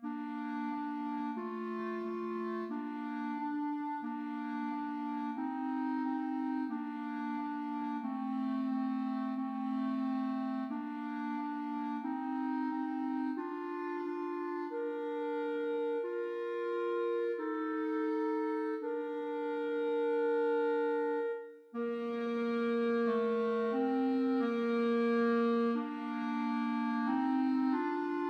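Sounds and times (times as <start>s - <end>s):
beginner clarinet duet in C major: 0.0s - 28.2s.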